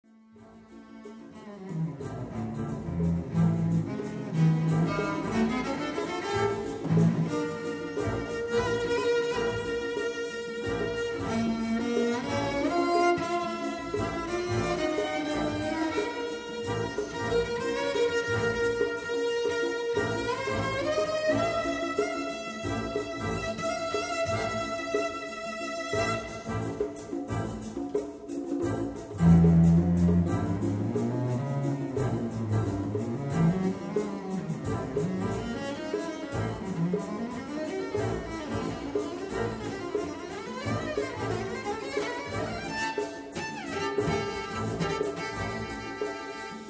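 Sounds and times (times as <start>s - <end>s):
cello: 0.0s - 46.6s.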